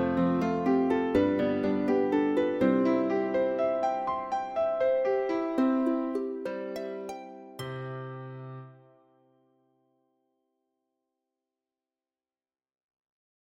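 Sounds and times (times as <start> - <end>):
arpeggiated piece in C: 0.0 - 9.0.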